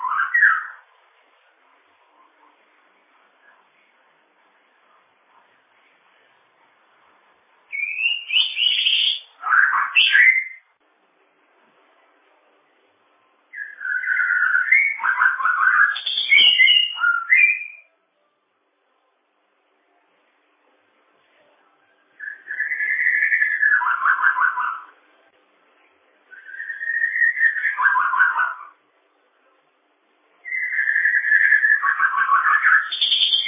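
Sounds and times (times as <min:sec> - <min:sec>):
bird singing: 0:00.0 - 0:00.9, 0:07.7 - 0:10.7, 0:13.5 - 0:17.9, 0:22.2 - 0:25.0, 0:26.3 - 0:28.8, 0:30.4 - 0:33.4.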